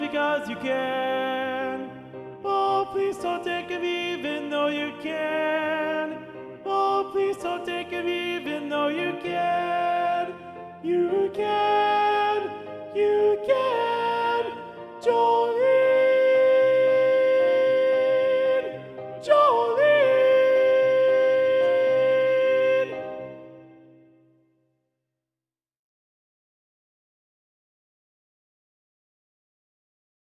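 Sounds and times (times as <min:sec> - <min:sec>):
soprano singing: 0:00.0 - 0:24.2.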